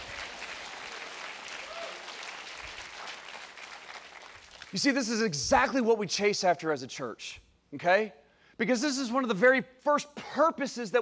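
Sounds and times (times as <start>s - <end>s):
audience clapping: 0.0s - 5.0s
speech: 4.7s - 11.0s.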